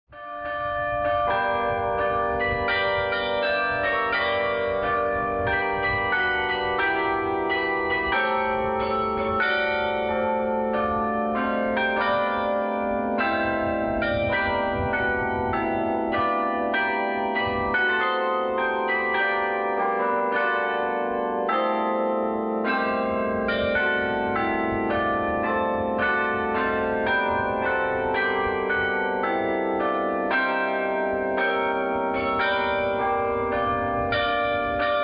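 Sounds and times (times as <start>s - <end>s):
carillon bells: 0.2s - 35.0s.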